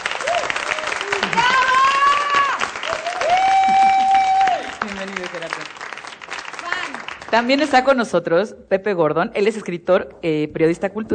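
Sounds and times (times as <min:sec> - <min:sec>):
audience applause: 0:00.0 - 0:07.7
speech: 0:07.3 - 0:11.1.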